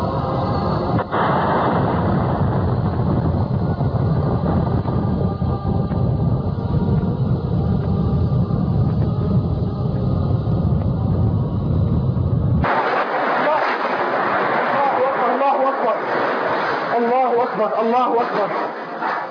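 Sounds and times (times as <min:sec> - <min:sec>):
rocket launch from a mountain during shelling: 0:00.1 - 0:09.6, 0:10.6 - 0:19.2
sharp crack: 0:12.6 - 0:19.2.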